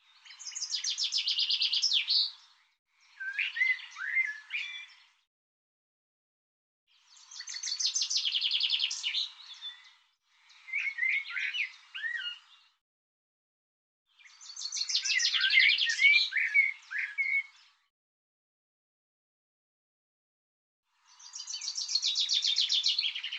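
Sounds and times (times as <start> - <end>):
songbird singing: 0.0 - 5.2, 6.9 - 12.8, 14.1 - 17.9, 21.0 - 23.3.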